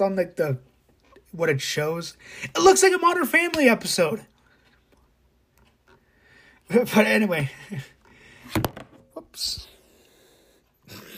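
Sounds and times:
speech: 0.0 - 0.7, 1.3 - 4.3, 6.7 - 8.8, 9.4 - 9.7
tripod falling with a loud bang: 8.5 - 9.0.

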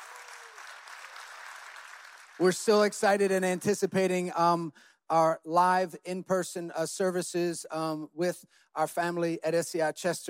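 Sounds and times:
audience applause: 0.0 - 3.0
speech: 2.4 - 10.2.

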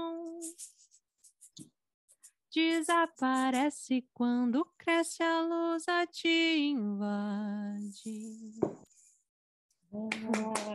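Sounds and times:
speech: 2.6 - 8.9, 9.9 - 10.7
audience clapping: 10.1 - 10.7.

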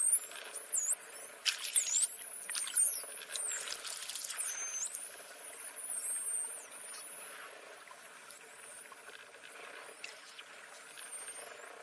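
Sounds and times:
dolphin whistles: 0.0 - 10.0
crackling underwater noise: 0.0 - 11.8.

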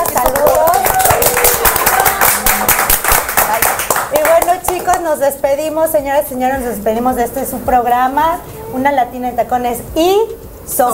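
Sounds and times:
applause: 0.0 - 5.0
speech: 5.1 - 10.9.

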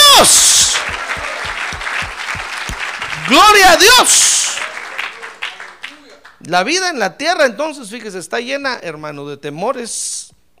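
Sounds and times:
audience applause: 0.0 - 6.4
speech: 3.3 - 4.4, 6.4 - 10.3.

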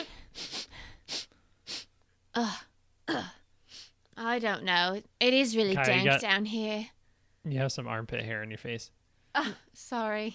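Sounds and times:
person sniffing: 0.0 - 1.9
speech: 2.4 - 2.7, 4.4 - 10.3.

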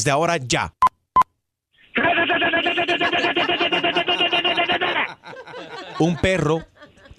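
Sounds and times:
speech: 0.0 - 0.8, 5.3 - 7.1
voice imitating machine gun fire: 2.0 - 5.1
laughter: 2.0 - 7.1.

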